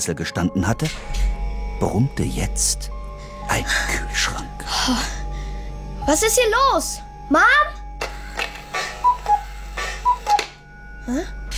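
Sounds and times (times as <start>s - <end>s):
speech: 0.0s - 5.2s, 6.1s - 7.8s, 11.1s - 11.4s
cuckoo clock ticking: 8.0s - 10.6s.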